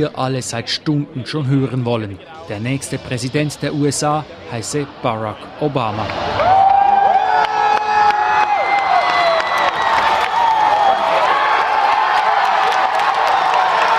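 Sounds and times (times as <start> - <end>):
speech: 0.0 - 6.6
large crowd roaring and cheering: 4.3 - 13.9
scattered applause: 6.0 - 13.9
whoops and shrieks: 6.3 - 13.9.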